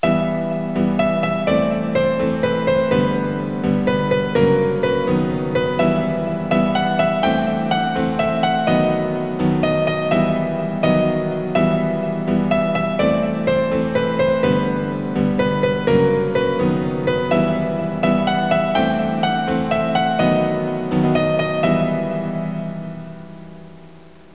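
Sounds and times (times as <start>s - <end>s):
piano: 0.0s - 24.3s.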